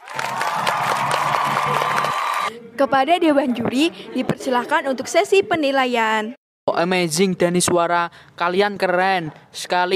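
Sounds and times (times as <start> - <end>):
crowd applause: 0.0 - 2.5
speech: 2.5 - 9.9.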